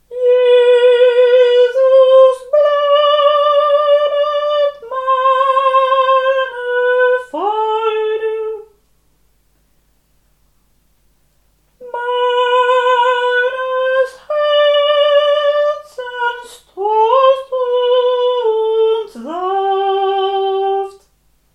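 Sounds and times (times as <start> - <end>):
sopranos singing: 0.1 - 8.7, 11.8 - 21.0.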